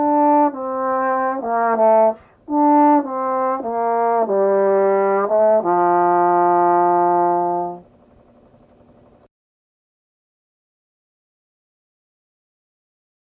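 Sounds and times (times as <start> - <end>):
trombone playing andante: 0.0 - 7.9.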